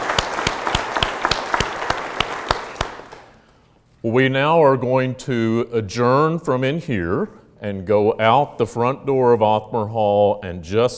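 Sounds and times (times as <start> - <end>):
audience applause: 0.0 - 3.4
speech: 4.0 - 10.9.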